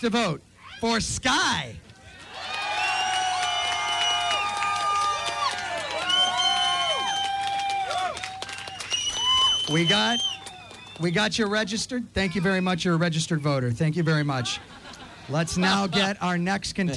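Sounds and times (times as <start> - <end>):
speech: 0.0 - 1.9, 9.7 - 10.4, 11.0 - 14.7, 15.3 - 16.9
crowd cheering and screaming: 2.1 - 11.0
clapping: 2.4 - 11.1
laughter: 12.2 - 12.8, 13.4 - 16.2.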